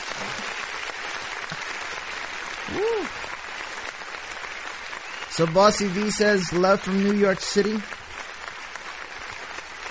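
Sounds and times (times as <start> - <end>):
applause: 0.0 - 9.8
speech: 2.7 - 3.2, 5.4 - 8.0.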